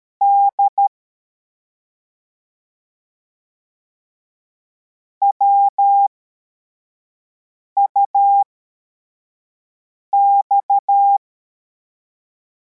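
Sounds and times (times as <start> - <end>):
CW morse code beeps: 0.2 - 0.8, 5.2 - 6.1, 10.2 - 11.2.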